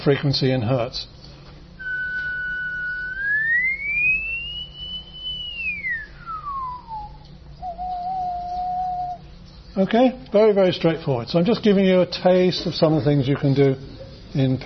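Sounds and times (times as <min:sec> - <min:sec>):
speech: 0:00.0 - 0:01.2, 0:09.8 - 0:14.6
person whistling a steady tone: 0:01.8 - 0:09.2.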